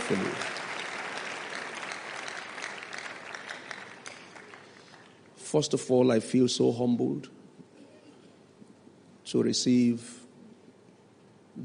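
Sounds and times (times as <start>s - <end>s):
audience clapping: 0.0s - 5.4s
speech: 0.1s - 0.5s, 5.5s - 7.4s, 9.3s - 10.2s.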